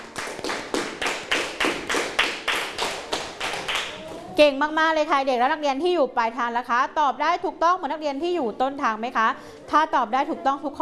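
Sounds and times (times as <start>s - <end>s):
students clapping hands: 0.0s - 4.1s
speech: 4.4s - 10.8s.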